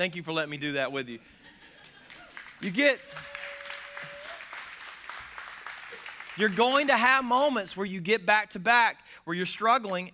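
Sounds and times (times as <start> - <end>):
speech: 0.0 - 1.5, 2.6 - 3.3, 6.4 - 10.1
audience clapping: 1.8 - 7.6.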